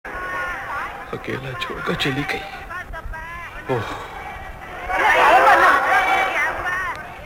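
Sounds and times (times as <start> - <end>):
babble of a busy crowd hurrying past: 0.1 - 7.2
speech: 1.1 - 2.6, 3.7 - 4.1.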